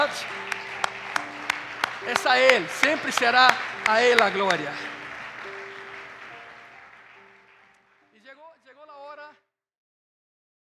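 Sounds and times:
audience applause: 0:00.0 - 0:08.1
speech: 0:02.0 - 0:04.9.

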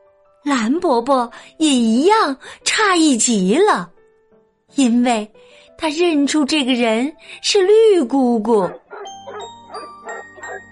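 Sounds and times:
speech: 0:00.4 - 0:04.0, 0:04.7 - 0:08.8
dog barking frantically: 0:08.7 - 0:10.7.

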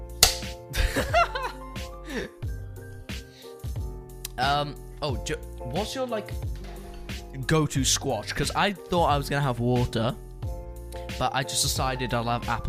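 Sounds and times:
hand claps: 0:00.2 - 0:00.6
laughter: 0:00.7 - 0:02.3
speech: 0:04.4 - 0:06.5, 0:07.5 - 0:10.2, 0:11.2 - 0:12.6.

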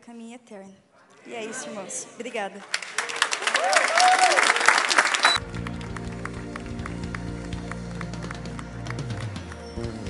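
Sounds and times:
speech: 0:00.0 - 0:05.5
church worship congregation clapping hands: 0:02.6 - 0:10.0.

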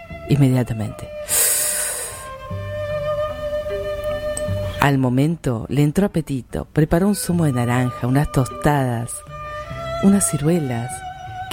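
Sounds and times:
soft sustained musical tones with low bass notes: 0:00.0 - 0:05.2, 0:06.9 - 0:11.5
speech: 0:00.3 - 0:01.4, 0:04.8 - 0:09.3, 0:10.0 - 0:11.5
strong sniff inhaling from a bottle: 0:01.3 - 0:02.4.

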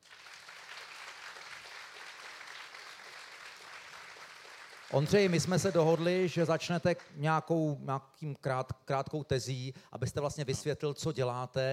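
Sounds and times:
audience applause: 0:00.0 - 0:06.4
speech: 0:04.9 - 0:11.7.

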